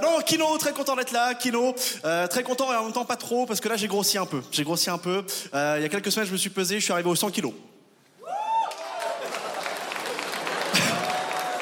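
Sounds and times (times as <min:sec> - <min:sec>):
speech: 0:00.3 - 0:07.8
crowd whooping: 0:08.2 - 0:11.5
audience applause: 0:08.5 - 0:11.5.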